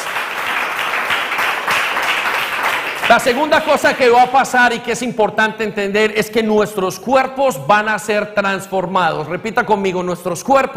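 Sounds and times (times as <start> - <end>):
audience applause: 0.0 - 4.4
speech: 3.1 - 10.7.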